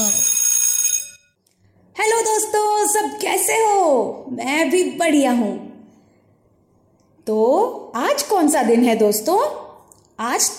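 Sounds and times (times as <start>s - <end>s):
school bell ringing: 0.0s - 1.4s
speech: 2.9s - 5.7s, 7.3s - 9.6s, 10.2s - 10.5s.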